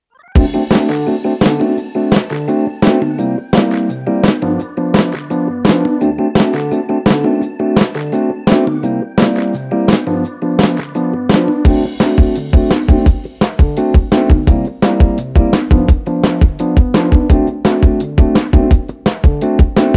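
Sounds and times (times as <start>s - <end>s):
cheerful entertainment music: 0.4s - 19.9s.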